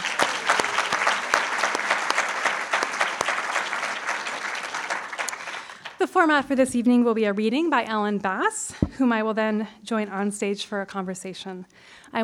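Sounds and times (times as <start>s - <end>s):
audience applause: 0.0s - 6.0s
speech: 6.1s - 12.2s.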